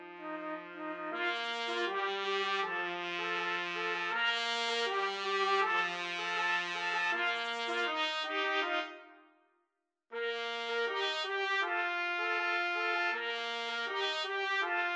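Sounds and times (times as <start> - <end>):
trumpet trio playing: 0.1 - 9.0, 10.2 - 14.9.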